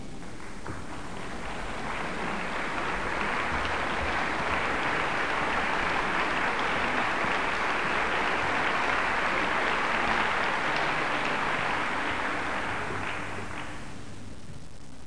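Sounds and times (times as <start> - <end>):
applause: 0.0 - 14.3.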